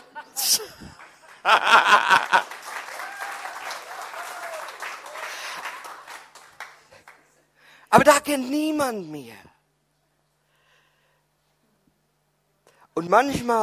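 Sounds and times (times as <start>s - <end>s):
laughter: 0.0s - 2.8s
speech: 0.2s - 2.4s, 7.9s - 9.5s, 13.0s - 13.6s
audience applause: 0.8s - 7.4s.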